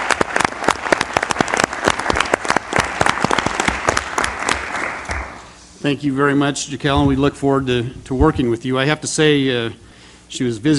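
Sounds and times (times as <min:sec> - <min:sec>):
audience applause: 0:00.0 - 0:05.5
speech: 0:05.8 - 0:10.7.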